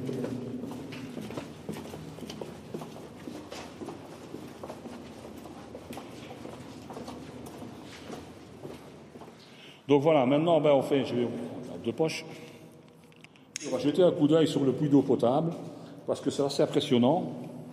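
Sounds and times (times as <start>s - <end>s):
footsteps descending a damp, humid path: 0.0s - 9.5s
low noise: 0.0s - 17.7s
speech: 9.9s - 12.4s, 13.8s - 17.5s.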